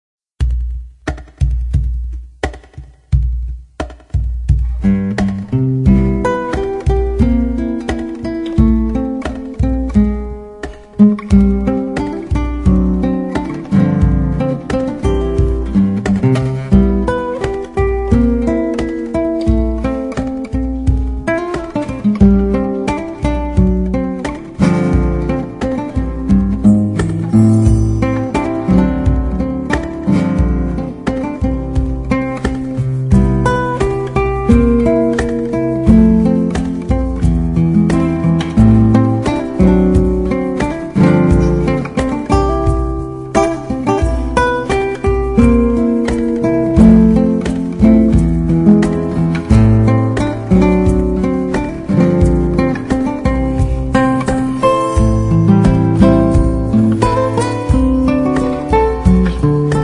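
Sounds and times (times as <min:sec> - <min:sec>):
guitar: 0:00.4 - 0:59.8.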